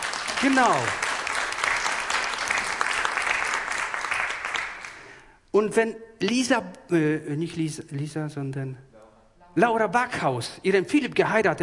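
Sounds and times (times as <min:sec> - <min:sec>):
people clapping: 0:00.0 - 0:05.3
speech: 0:00.4 - 0:01.0, 0:05.6 - 0:08.9, 0:09.6 - 0:11.6.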